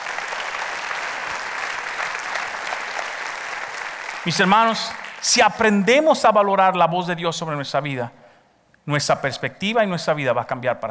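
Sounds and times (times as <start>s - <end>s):
audience applause: 0.0s - 5.5s
speech: 4.2s - 8.2s, 8.8s - 10.8s.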